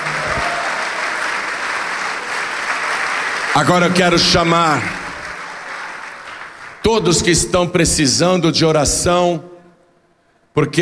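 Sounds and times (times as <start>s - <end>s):
audience applause: 0.0s - 7.3s
speech: 3.6s - 5.0s, 6.9s - 9.5s, 10.6s - 10.8s.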